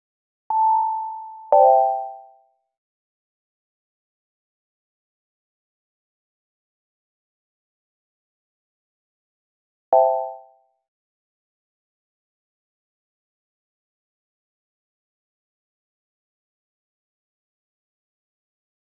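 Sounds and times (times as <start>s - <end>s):
multiple notification sounds: 0.5s - 2.4s, 10.0s - 10.5s.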